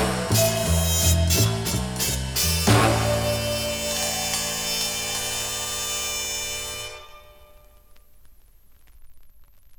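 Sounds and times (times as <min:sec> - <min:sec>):
orchestra playing: 0:00.0 - 0:05.6.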